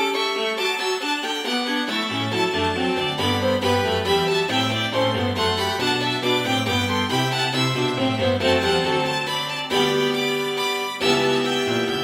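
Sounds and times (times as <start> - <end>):
fugue for two violins, viola and cello: 0.0 - 12.0.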